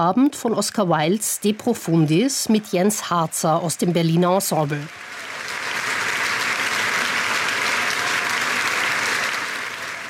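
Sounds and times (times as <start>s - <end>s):
speech: 0.0s - 5.3s
audience applauding a pianist at a festival: 2.7s - 10.0s.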